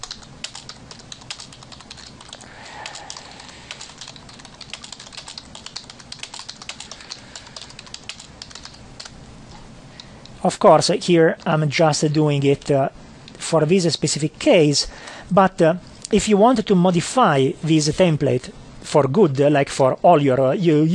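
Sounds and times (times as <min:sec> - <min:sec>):
rapid typing on a computer keyboard: 0:00.0 - 0:09.2
speech: 0:10.4 - 0:20.9.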